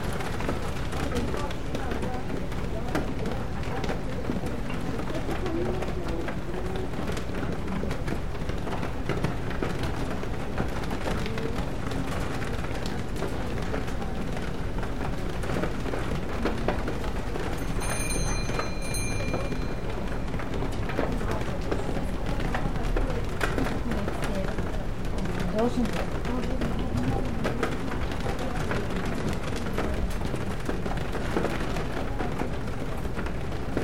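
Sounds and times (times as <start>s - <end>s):
murmur of voices: 0.0s - 33.2s
rain on a bookstore window: 0.0s - 33.8s
high chiming tone: 17.6s - 20.1s.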